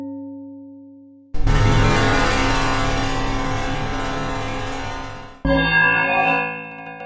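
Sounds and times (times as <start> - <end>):
synthesized rubbing sounds: 1.4 - 5.5
synthesized vibrations: 1.4 - 7.0.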